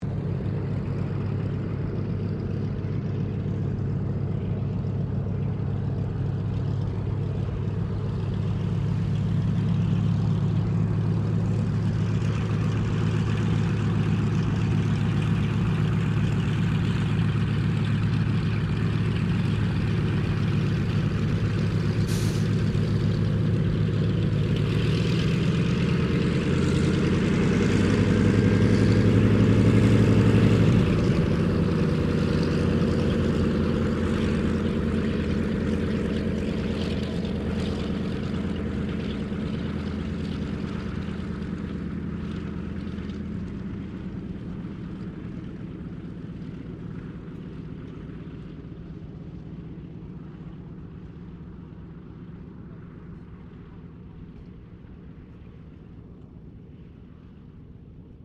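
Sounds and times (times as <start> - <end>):
Douglas DC-3 aircraft taxiing: 0.0 - 58.2.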